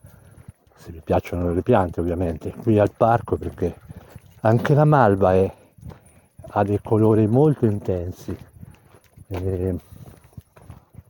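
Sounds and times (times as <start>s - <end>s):
footsteps walking through a park: 0.0s - 11.0s
speech: 0.8s - 3.8s, 4.4s - 5.6s, 6.5s - 8.5s, 9.3s - 9.9s.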